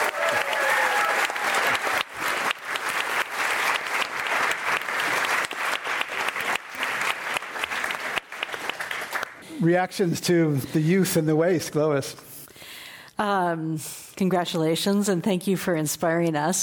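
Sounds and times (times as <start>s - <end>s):
audience applause: 0.0s - 9.4s
speech: 9.6s - 12.3s, 13.2s - 16.6s.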